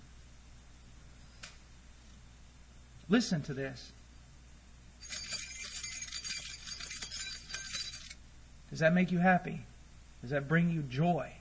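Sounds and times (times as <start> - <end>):
speech: 3.1 - 4.0, 8.7 - 11.3
bunch of keys jingling: 5.0 - 8.2.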